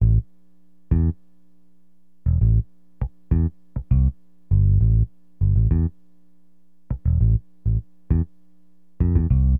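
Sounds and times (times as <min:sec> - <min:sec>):
acid jazz funk bass: 0:00.0 - 0:00.3, 0:00.9 - 0:01.2, 0:02.2 - 0:06.0, 0:06.9 - 0:08.4, 0:09.0 - 0:09.5.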